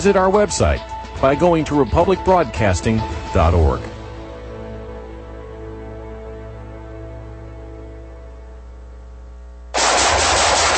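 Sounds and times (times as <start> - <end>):
speech: 0.0 - 3.9
low hum: 4.7 - 10.7
automatic gunfire: 9.8 - 10.7.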